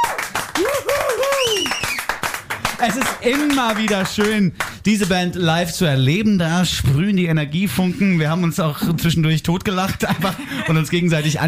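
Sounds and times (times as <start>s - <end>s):
live concert audience clapping after a band performance: 0.0s - 5.4s
speech: 2.8s - 11.4s
laughter: 9.9s - 11.4s.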